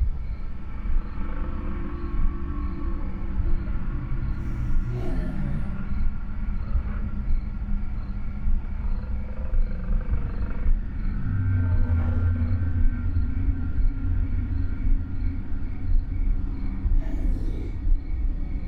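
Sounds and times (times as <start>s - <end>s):
ambience: 0.0s - 18.6s.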